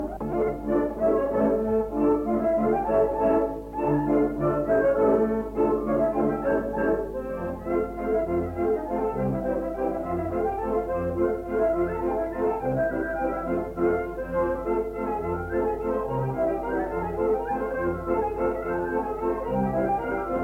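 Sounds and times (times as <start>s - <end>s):
instrumental music: 0.0s - 20.4s.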